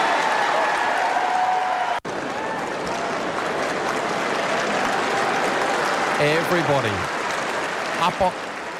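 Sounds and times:
stadium crowd standing ovation applause: 0.0s - 8.7s
speech: 6.2s - 7.2s, 8.0s - 8.7s.

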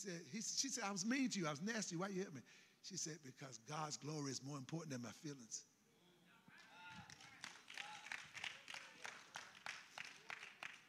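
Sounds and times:
speech: 0.0s - 5.7s
audience clapping: 6.6s - 10.8s.

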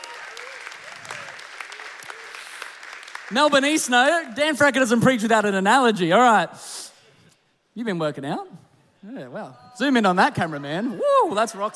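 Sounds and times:
audience clapping as two guests are welcomed onto a stage: 0.0s - 5.3s
speech: 3.3s - 6.8s, 7.8s - 11.7s.

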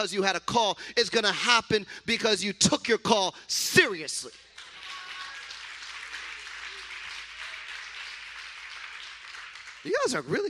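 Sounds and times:
speech: 0.0s - 4.5s, 9.8s - 10.4s
audience applause: 4.6s - 10.4s.

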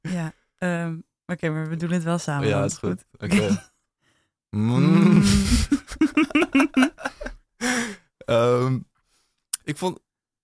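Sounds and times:
speech: 0.3s - 3.7s, 4.5s - 6.2s, 8.3s - 8.9s, 9.7s - 10.0s
people imitating a cow mooing: 4.6s - 5.4s
laughter: 5.2s - 7.4s.

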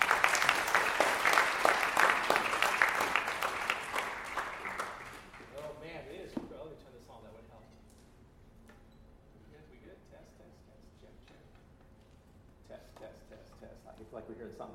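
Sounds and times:
audience applause welcoming a guest speaker at a campus ministry gathering: 0.0s - 5.6s.

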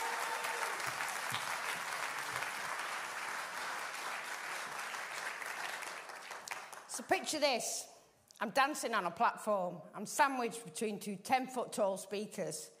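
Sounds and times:
audience applause: 0.0s - 6.8s
speech: 7.0s - 12.7s.

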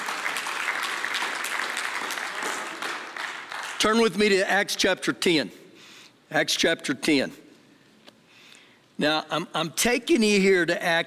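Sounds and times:
crowd applauding: 0.0s - 4.0s
speech: 3.8s - 5.6s, 6.3s - 7.4s, 9.0s - 11.0s.

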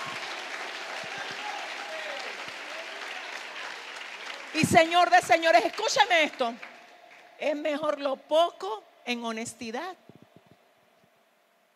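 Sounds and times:
audience applause: 0.0s - 7.6s
speech: 4.6s - 6.7s, 7.4s - 10.0s.

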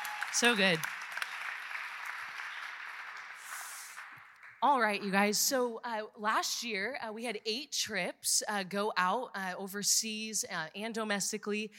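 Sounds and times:
audience applause: 0.0s - 4.6s
speech: 0.3s - 1.0s, 4.6s - 11.7s.

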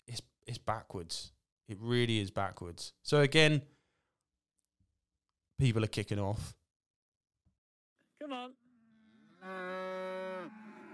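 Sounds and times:
speech: 0.6s - 3.8s, 5.6s - 6.6s, 8.3s - 8.6s, 9.4s - 10.6s
cow mooing on a 500-acre cattle farm in South Gloucestershire: 8.8s - 10.9s.

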